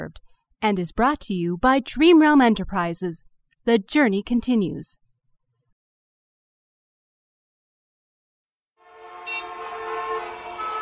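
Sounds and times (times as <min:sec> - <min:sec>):
speech: 0:00.1 - 0:05.0
honking horns: 0:08.8 - 0:10.7
traffic noise: 0:08.8 - 0:10.7.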